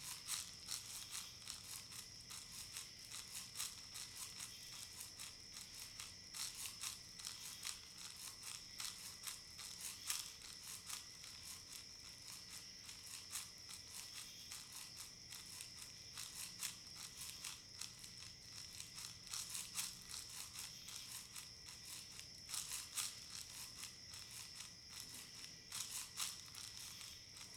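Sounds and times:
crickets chirring: 0:00.0 - 0:27.5.

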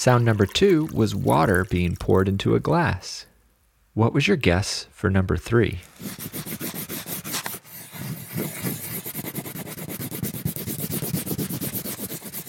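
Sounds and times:
speech: 0:00.0 - 0:03.3, 0:04.0 - 0:06.5
crayon scribbling on paper: 0:06.0 - 0:12.4.

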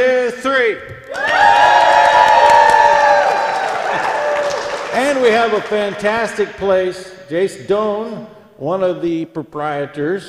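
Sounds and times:
speech: 0:00.3 - 0:01.7, 0:05.1 - 0:10.2
live audience cheering: 0:01.1 - 0:06.5.

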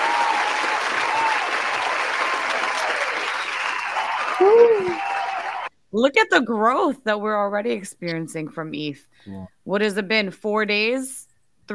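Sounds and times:
group applauding: 0:00.0 - 0:05.7
speech: 0:06.0 - 0:11.7.

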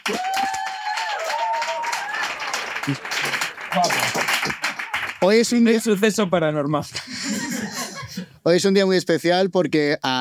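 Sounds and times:
audience applause: 0:00.0 - 0:06.0
speech: 0:02.9 - 0:04.0, 0:05.2 - 0:07.2, 0:08.4 - 0:10.2
laughter: 0:06.9 - 0:08.4.

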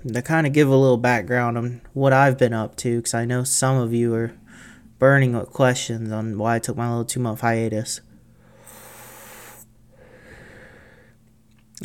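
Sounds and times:
speech: 0:00.0 - 0:04.4, 0:05.0 - 0:08.1
breathy rush of air: 0:08.4 - 0:11.2
inhaling from a vape: 0:08.4 - 0:11.2.

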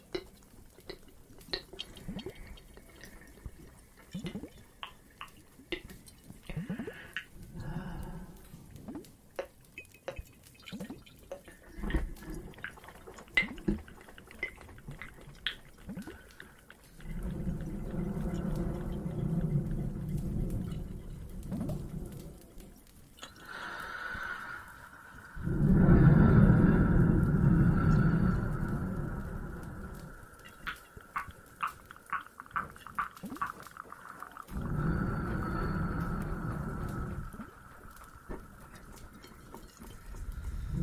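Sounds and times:
fireplace crackles: 0:00.0 - 0:40.8
water drips in a cave: 0:00.0 - 0:40.8
low rumbling swells: 0:17.0 - 0:22.8, 0:25.2 - 0:31.4, 0:34.5 - 0:40.8.

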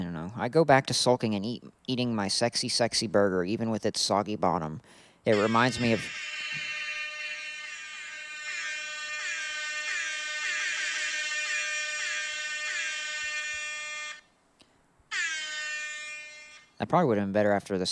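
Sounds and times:
speech: 0:00.4 - 0:06.7, 0:16.8 - 0:17.9
air horn blast: 0:05.3 - 0:14.2, 0:15.1 - 0:16.8.

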